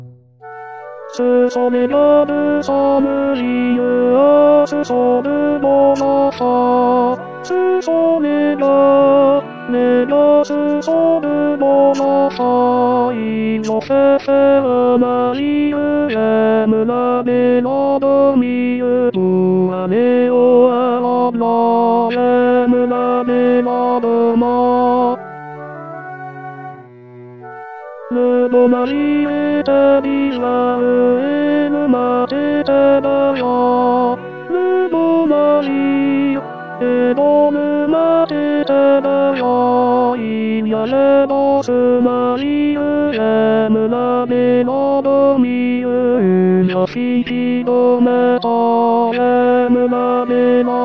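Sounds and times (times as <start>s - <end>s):
tenor singing: 1.1s - 50.8s.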